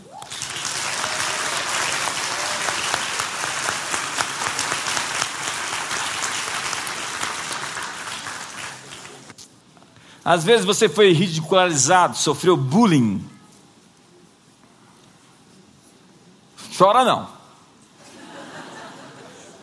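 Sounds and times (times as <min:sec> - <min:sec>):
audience applause: 0:00.0 - 0:09.3
speech: 0:10.3 - 0:13.3, 0:16.8 - 0:17.4
laughter: 0:18.0 - 0:19.6.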